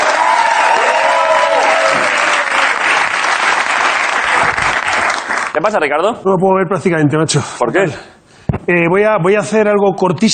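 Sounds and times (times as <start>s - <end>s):
faint whistles and cheers: 0.0s - 2.8s
audience applause: 0.0s - 5.6s
speech: 5.6s - 10.3s.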